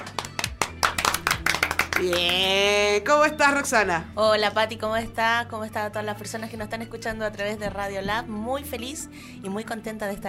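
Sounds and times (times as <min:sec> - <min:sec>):
applause for a guest: 0:00.0 - 0:02.7
speech: 0:02.0 - 0:10.2.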